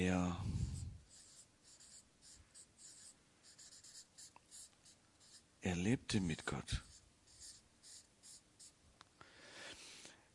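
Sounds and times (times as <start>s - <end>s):
speech: 0.0s - 0.6s, 5.6s - 6.9s
pen scratching across paper during a Bible lesson: 0.5s - 5.5s, 6.7s - 8.8s.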